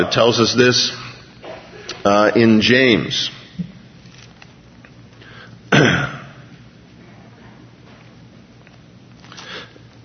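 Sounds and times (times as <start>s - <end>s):
speech: 0.0s - 1.0s, 2.0s - 3.7s
low hum: 0.0s - 10.0s
man clearing his throat while reading scripture aloud: 5.7s - 6.5s.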